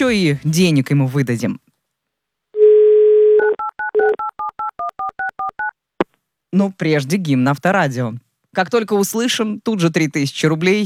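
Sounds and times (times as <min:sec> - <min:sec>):
speech: 0:00.0 - 0:01.6, 0:06.5 - 0:10.8
telephone dial tone: 0:02.6 - 0:05.7.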